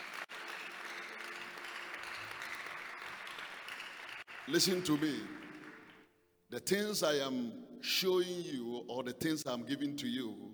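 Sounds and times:
audience clapping hands: 0.0 - 6.1
speech: 4.5 - 5.4, 6.5 - 10.5.

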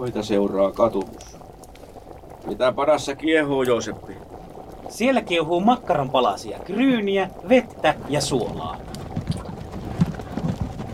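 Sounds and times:
speech: 0.0 - 1.4, 2.5 - 8.9
rumbling cart wheels: 7.8 - 10.9
horse hooves: 7.9 - 10.9.

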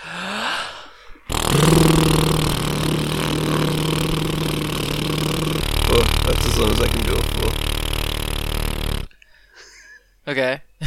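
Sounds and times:
lip trill vocal warm-up: 1.3 - 9.1
speech: 6.6 - 7.4, 10.3 - 10.8.

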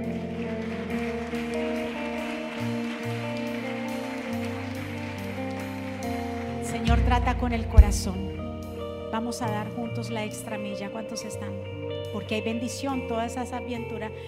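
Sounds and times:
loud audience applause: 0.0 - 7.0
sustained music with shifting low notes: 0.0 - 12.2
speech: 6.8 - 8.3, 9.1 - 14.2.

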